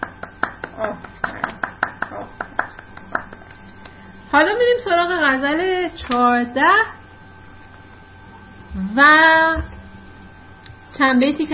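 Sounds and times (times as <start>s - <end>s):
faint hand clapping: 0.0s - 4.0s
speech: 0.8s - 1.1s, 4.4s - 7.0s, 8.8s - 9.7s, 11.0s - 11.5s.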